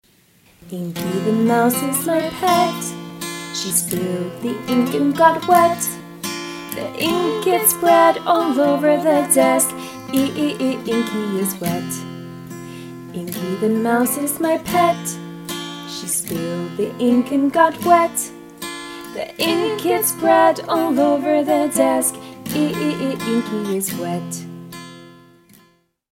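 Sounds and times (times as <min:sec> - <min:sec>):
song harmony: 0:00.7 - 0:24.3.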